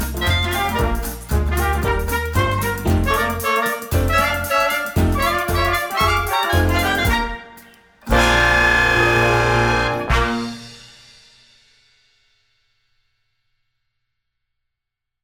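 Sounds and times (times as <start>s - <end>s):
waggish piano music: 0.0s - 7.4s, 8.1s - 10.6s.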